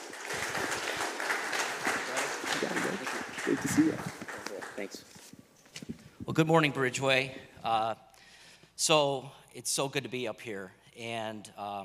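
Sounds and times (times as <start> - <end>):
church congregation clapping to welcome an elder: 0.0 - 5.3
speech: 2.6 - 4.2, 4.8 - 5.1, 6.3 - 8.1, 8.8 - 11.8.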